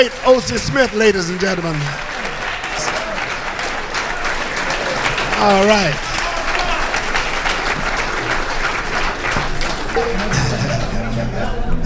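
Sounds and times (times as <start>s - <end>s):
speech: 0.0s - 2.1s, 5.4s - 6.1s, 10.0s - 10.4s
audience applause: 0.0s - 11.8s
laughter: 4.7s - 11.8s.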